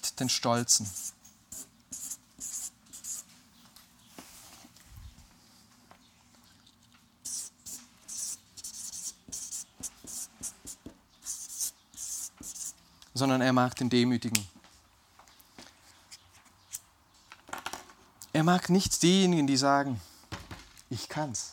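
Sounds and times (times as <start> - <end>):
speech: 0.2 - 1.2, 13.2 - 14.6, 18.4 - 20.1, 20.9 - 21.5
pen scratching on paper writing words: 0.7 - 3.2, 7.2 - 12.7.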